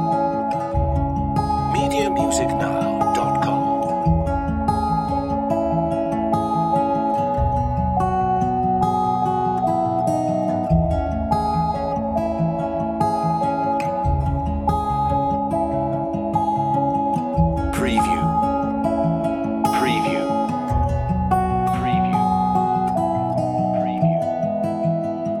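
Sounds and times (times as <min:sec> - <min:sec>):
music loop: 0:00.1 - 0:25.2.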